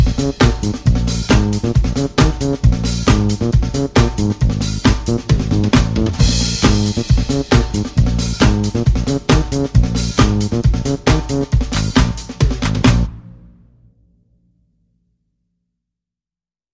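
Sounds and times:
soul drums: 0.0 - 13.6
soul bass: 0.0 - 14.0.

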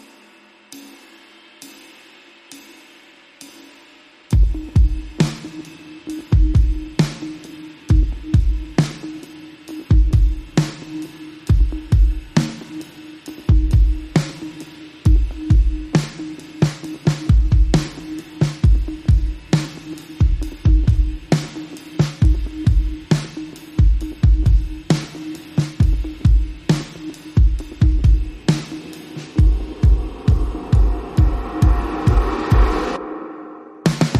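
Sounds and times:
drums: 0.0 - 34.1
synths: 4.5 - 34.1
sound effects: 27.8 - 34.1.

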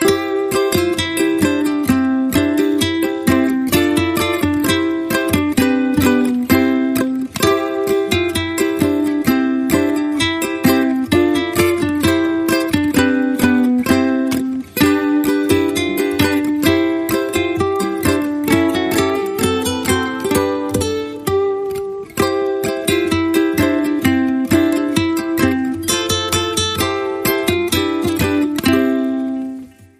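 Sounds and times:
ukulele guitar: 0.0 - 29.9.

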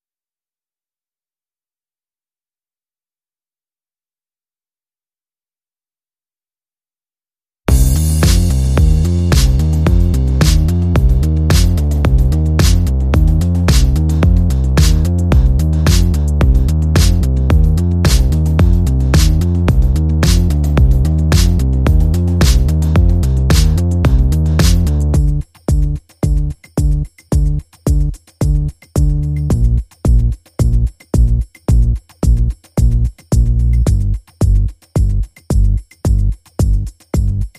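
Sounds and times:
bass: 7.7 - 37.5
drums: 7.7 - 37.5.

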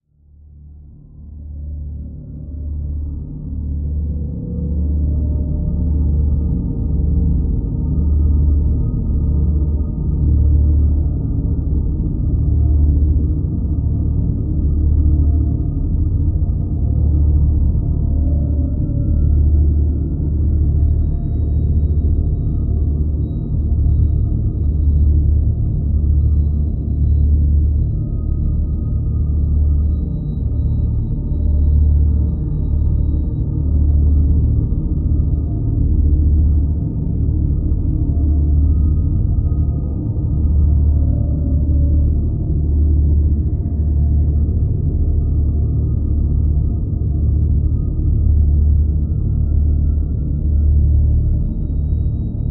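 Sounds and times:
drone: 0.4 - 52.4.

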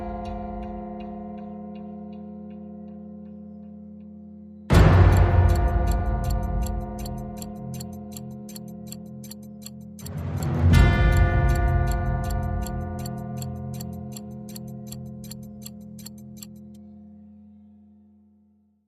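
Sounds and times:
clocklike tone in F: 4.7 - 16.8.

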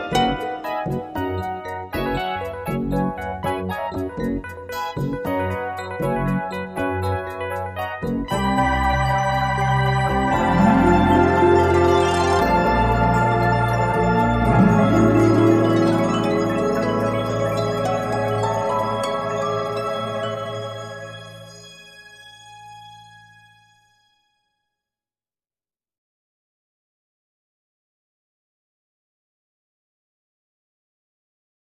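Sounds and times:
cosmic jazz music: 0.0 - 23.6.

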